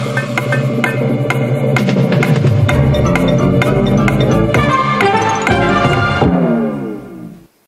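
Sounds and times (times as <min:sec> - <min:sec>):
countdown music for a minigame: 0:00.0 - 0:06.8.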